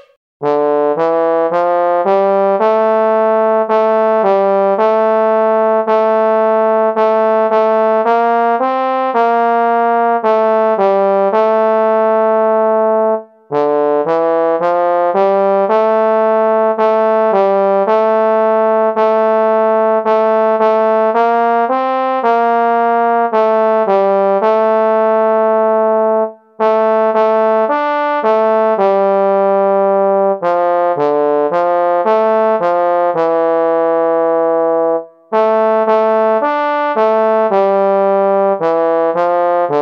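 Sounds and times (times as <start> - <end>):
trombone: 0.4 - 39.7.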